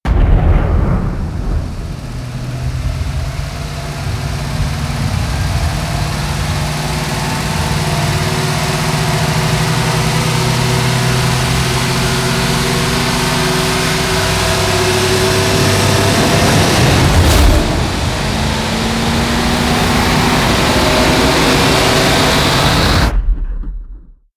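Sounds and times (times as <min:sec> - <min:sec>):
thunder wheels riser sound effect: 0:00.1 - 0:24.1.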